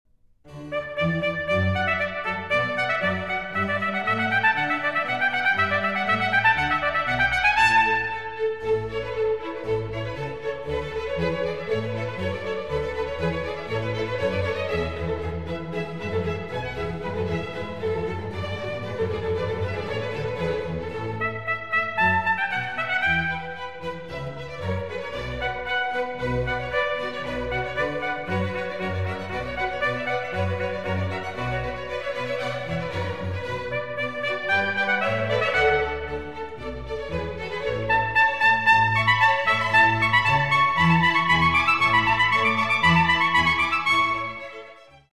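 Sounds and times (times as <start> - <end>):
trumpet concerto music: 0.5 - 44.9.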